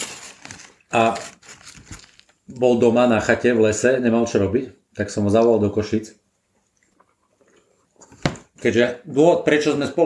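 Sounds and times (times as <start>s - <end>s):
crisp crunch of food: 0.0s - 2.7s
speech: 0.9s - 1.3s, 2.6s - 6.2s, 8.6s - 10.0s
person chewing the last piece of food: 6.5s - 8.1s.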